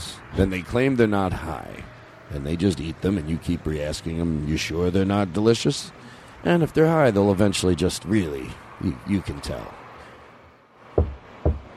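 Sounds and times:
speech: 0:00.4 - 0:09.8
dull low thumps tapped by hand to mimic footsteps: 0:11.0 - 0:11.7.

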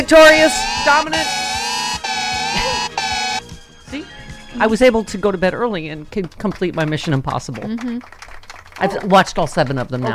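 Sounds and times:
speech: 0:00.1 - 0:01.4, 0:03.9 - 0:10.1
air raid siren sound effect: 0:00.2 - 0:03.5.

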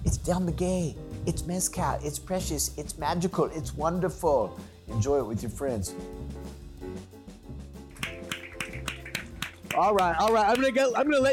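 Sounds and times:
speech: 0:00.2 - 0:06.2, 0:09.8 - 0:11.3
audience slow clap: 0:07.9 - 0:11.3.

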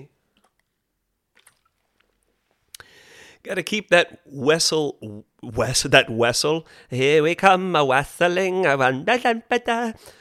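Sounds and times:
swig of water being drunk: 0:00.3 - 0:03.0
speech: 0:03.4 - 0:10.1.

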